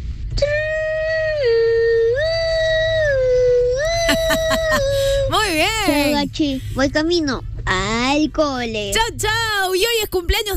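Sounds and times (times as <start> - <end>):
child imitating fire truck siren: 0.5 - 5.4
laughter: 3.9 - 6.2
speech: 5.5 - 10.5.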